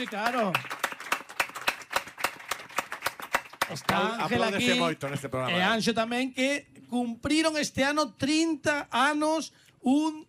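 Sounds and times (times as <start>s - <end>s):
speech: 0.0s - 0.8s, 3.7s - 10.2s
audience applause: 0.0s - 5.4s.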